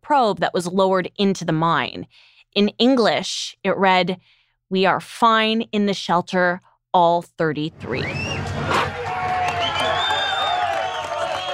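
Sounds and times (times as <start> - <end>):
speech: 0.1 - 9.0
euphoric crowd cheering: 7.9 - 11.5.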